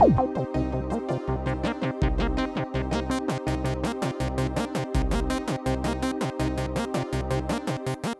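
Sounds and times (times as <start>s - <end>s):
Casio XW-P1 solo synthesizer: 0.0s - 8.0s.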